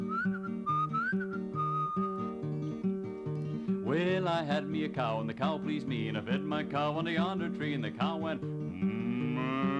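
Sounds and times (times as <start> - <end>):
whistled imitation of a bird call: 0.0 - 2.3
strummed instrumental accompaniment: 0.0 - 9.7
speech: 3.9 - 8.9.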